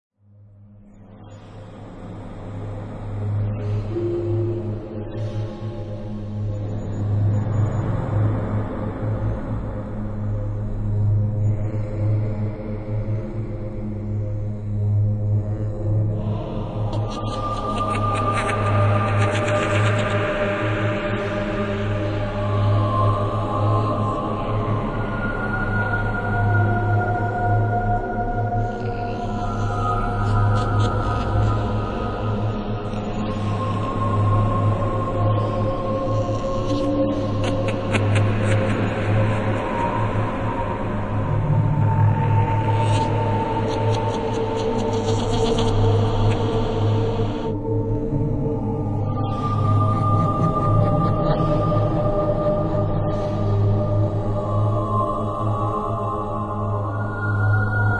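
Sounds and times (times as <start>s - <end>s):
Halloween music: 0.2s - 57.9s.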